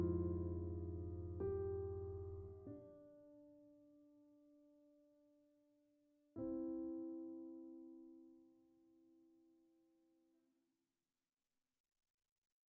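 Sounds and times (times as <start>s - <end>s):
piano: 0.0s - 5.6s, 6.3s - 9.8s.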